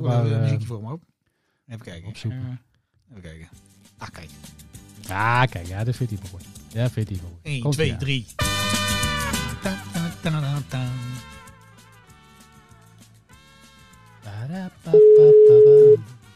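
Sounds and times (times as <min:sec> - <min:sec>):
speech: 0:00.0 - 0:01.1, 0:01.7 - 0:08.8, 0:09.6 - 0:10.9
outgoing call telephone ringing tone: 0:15.0 - 0:16.0.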